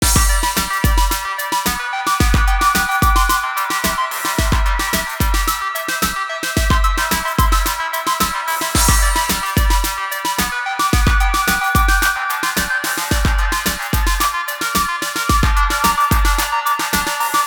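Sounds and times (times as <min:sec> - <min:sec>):
GarageBand MIDI music: 0:00.0 - 0:17.4.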